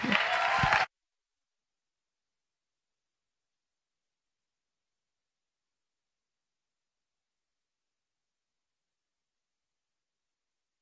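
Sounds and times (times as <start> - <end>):
audience applause welcoming a speaker at an evening gathering: 0.0 - 0.9.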